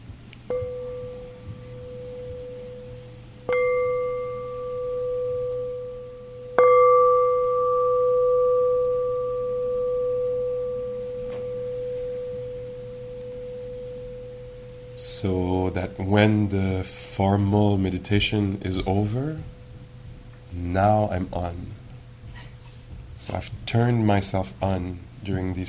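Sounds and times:
low steady hum: 0.0 - 25.6
meditation bell ringing: 0.5 - 20.3
speech: 15.2 - 19.6, 20.6 - 21.8, 23.3 - 25.6.

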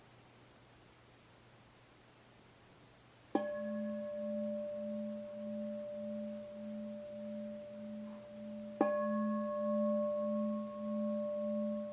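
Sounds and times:
meditation bell ringing: 3.4 - 11.9.

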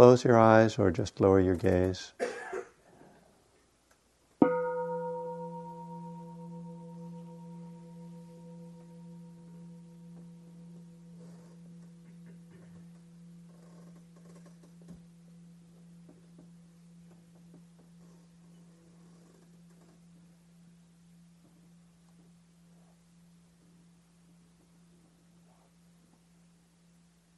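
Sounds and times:
speech: 0.0 - 2.4
meditation bell ringing: 4.4 - 27.0.

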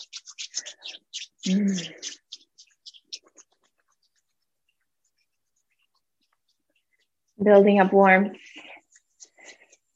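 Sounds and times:
palms rubbing together: 0.0 - 9.9
speech: 1.4 - 2.1, 7.4 - 8.4.

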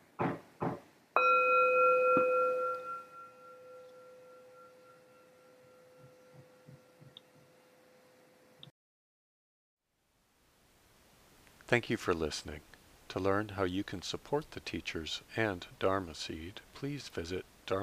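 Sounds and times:
soft knocks: 0.2 - 0.9
meditation bell ringing: 1.2 - 7.0
speech: 11.7 - 17.8.

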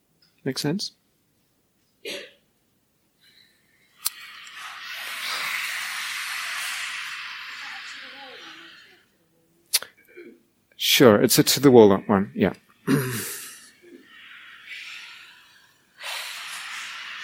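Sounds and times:
speech: 0.4 - 1.0, 11.0 - 13.1
short sharp breaths or clicks: 3.2 - 9.0, 13.2 - 17.2
voiced throat hiss: 4.0 - 9.1, 12.8 - 17.2.

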